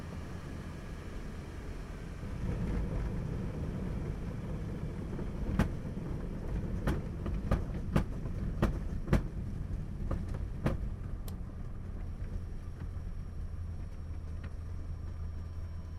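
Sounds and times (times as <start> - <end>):
CT4A military trainer aircraft interior during approach and landing: 0.0 - 15.9.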